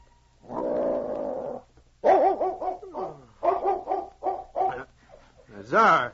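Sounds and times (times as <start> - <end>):
large dog growling: 0.4 - 1.6
large dog whimpering and barking: 2.0 - 4.8.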